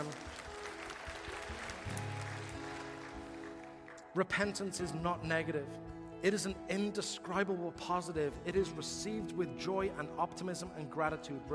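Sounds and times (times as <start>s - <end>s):
audience applause: 0.0s - 4.2s
speech: 4.2s - 11.5s.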